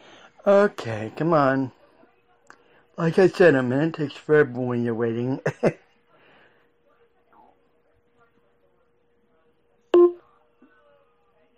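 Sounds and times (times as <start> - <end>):
speech: 0.4 - 1.8, 3.0 - 5.8
clock radio alarm beep: 10.0 - 10.2.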